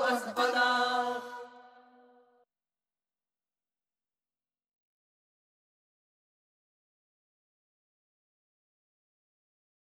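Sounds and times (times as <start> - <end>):
traditional celtic song vocals: 0.0 - 1.6.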